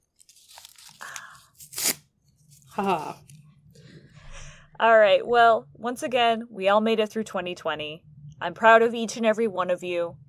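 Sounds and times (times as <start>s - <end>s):
paper cards ripping: 0.2s - 3.0s
speech: 2.8s - 3.3s, 4.8s - 10.2s.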